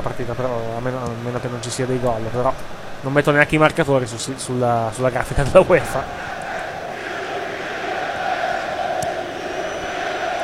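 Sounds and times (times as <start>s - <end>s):
speech: 0.2s - 6.4s
football fans chanting in stadium: 5.8s - 10.4s.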